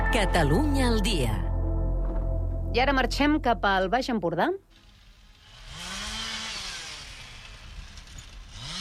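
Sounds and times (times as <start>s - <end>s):
speech: 0.2s - 1.5s, 2.8s - 4.7s
chainsaws cutting trees by a roadside: 4.7s - 8.7s.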